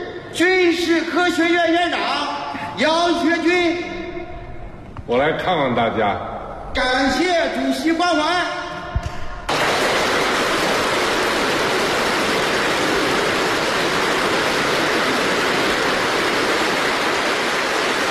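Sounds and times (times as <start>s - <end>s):
speech: 0.4s - 3.9s, 5.1s - 8.6s
loud sustained applause from a large crowd: 9.5s - 18.0s.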